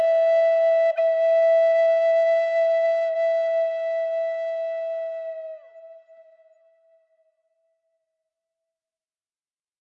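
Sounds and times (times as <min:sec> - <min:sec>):
Native American flute: 0:00.0 - 0:07.3.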